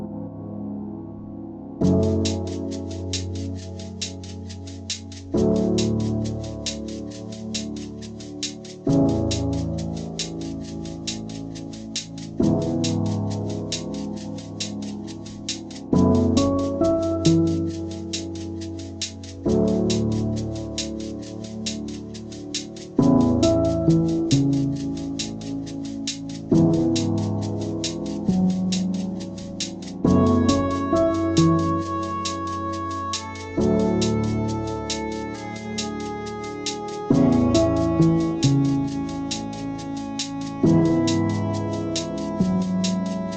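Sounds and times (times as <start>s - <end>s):
lo-fi music: 1.8s - 43.3s.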